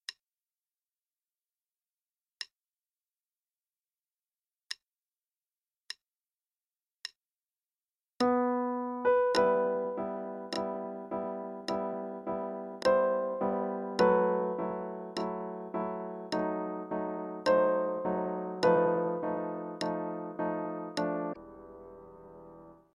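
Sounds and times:
prelude music: 8.2 - 22.9
click track: 10.5 - 10.8, 11.6 - 11.9, 12.8 - 13.0, 15.1 - 15.5, 16.3 - 16.6, 19.8 - 20.2.

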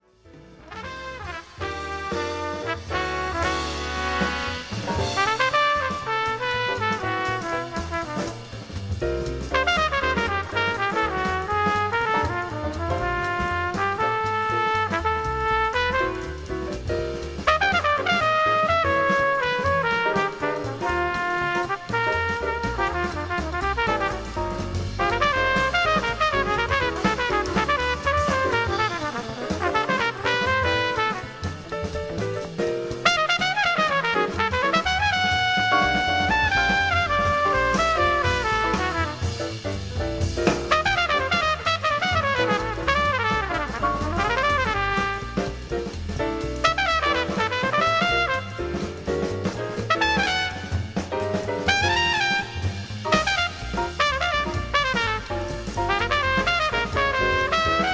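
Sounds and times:
solo jazz trumpet: 0.1 - 57.9.

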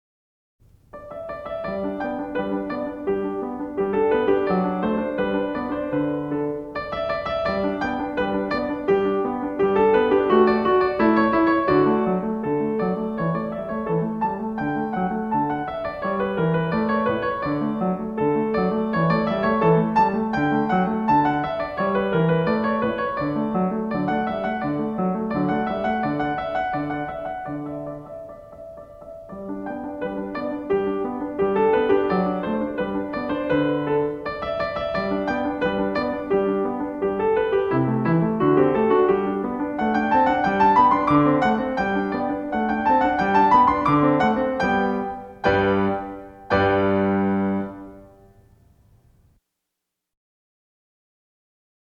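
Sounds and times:
sonatina in G major: 0.6 - 49.5.

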